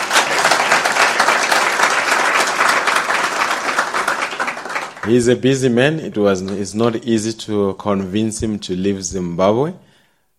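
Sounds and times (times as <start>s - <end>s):
audience applause: 0.0s - 5.4s
speech: 5.1s - 9.9s.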